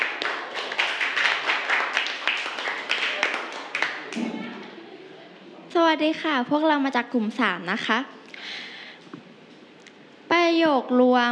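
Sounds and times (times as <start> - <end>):
classroom students clapping: 0.0 - 4.4
speech: 5.8 - 8.2, 10.5 - 11.3.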